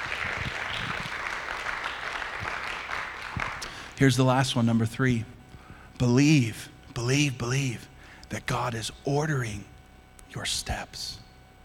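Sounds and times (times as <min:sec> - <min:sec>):
audience applause: 0:00.0 - 0:04.0
speech: 0:04.0 - 0:05.4, 0:06.0 - 0:09.7, 0:10.3 - 0:11.2.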